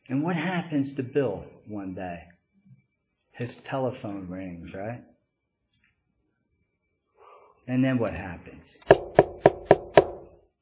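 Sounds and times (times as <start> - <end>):
speech: 0.1 - 2.3, 3.4 - 5.1, 7.7 - 9.3
knocking on a door: 8.9 - 10.2.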